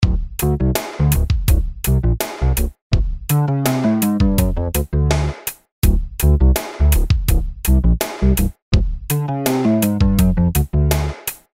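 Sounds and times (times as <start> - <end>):
bass: 0.0 - 11.5.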